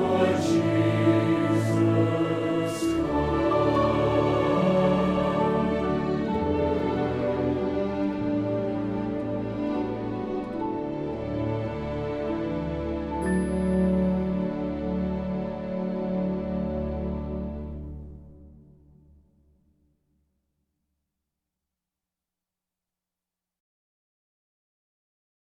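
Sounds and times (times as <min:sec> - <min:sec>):
orchestra: 0:00.0 - 0:19.2.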